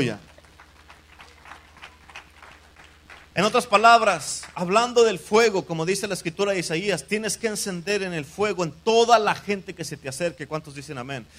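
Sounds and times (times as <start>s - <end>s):
speech: 0.0s - 0.2s, 3.4s - 11.3s
audience applause: 0.0s - 4.8s
low constant hum: 0.0s - 11.3s.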